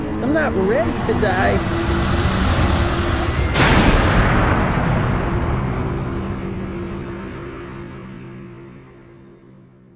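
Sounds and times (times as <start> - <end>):
speech: 0.3 - 2.0
spaceship crash-landing on a garbage-dump moon: 1.7 - 7.9.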